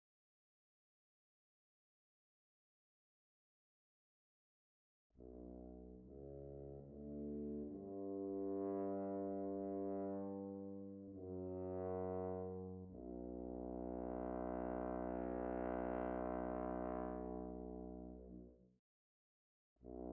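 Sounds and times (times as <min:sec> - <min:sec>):
tuba: 0:05.2 - 0:18.7, 0:19.8 - 0:20.1.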